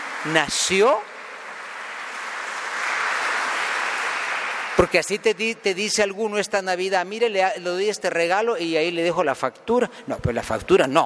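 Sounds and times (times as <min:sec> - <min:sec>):
audience applause: 0:00.0 - 0:05.3
speech: 0:00.2 - 0:01.1, 0:04.8 - 0:11.0.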